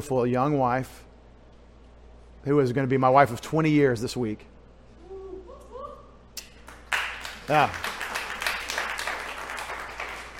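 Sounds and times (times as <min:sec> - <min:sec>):
speech: 0:00.0 - 0:01.1, 0:02.4 - 0:04.5, 0:07.5 - 0:07.9
audience applauding: 0:06.6 - 0:10.3.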